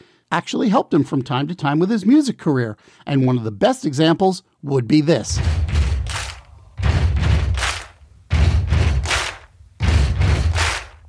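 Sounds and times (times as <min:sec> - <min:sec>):
speech: 0:00.3 - 0:05.7
band stomping and clapping in a recording studio: 0:05.3 - 0:11.0.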